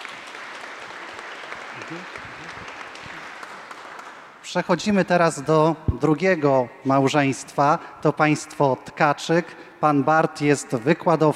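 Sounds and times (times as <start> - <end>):
applause: 0.0 - 4.4
speech: 1.8 - 2.8, 4.5 - 11.3.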